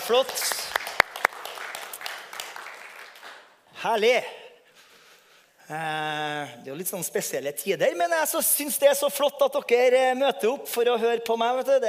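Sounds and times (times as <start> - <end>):
audience applause: 0.0 - 3.5
speech: 0.1 - 0.8, 3.8 - 4.4, 5.7 - 11.8.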